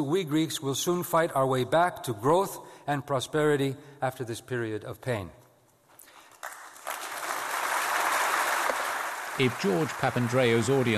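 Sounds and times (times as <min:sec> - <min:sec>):
speech: 0:00.0 - 0:05.4, 0:09.4 - 0:10.9
audience of German business people applauding: 0:06.3 - 0:10.9.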